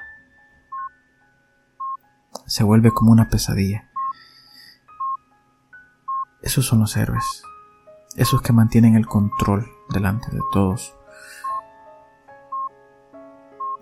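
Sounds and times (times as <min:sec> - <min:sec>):
hospital life-support monitor beeping: 0:00.7 - 0:01.0, 0:01.8 - 0:04.2, 0:04.9 - 0:05.2, 0:06.1 - 0:06.3, 0:07.0 - 0:07.4, 0:09.0 - 0:11.6, 0:12.5 - 0:12.7, 0:13.6 - 0:13.8
speech: 0:02.5 - 0:03.9, 0:06.5 - 0:07.5, 0:08.2 - 0:11.3.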